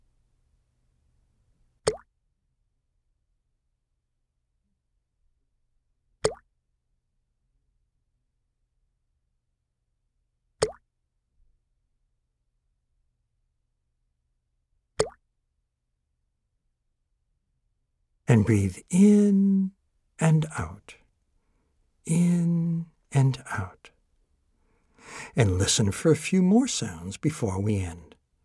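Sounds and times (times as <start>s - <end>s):
water drops plopping: 15.0s - 15.2s
speech: 18.3s - 21.0s, 22.0s - 23.8s, 25.1s - 28.1s.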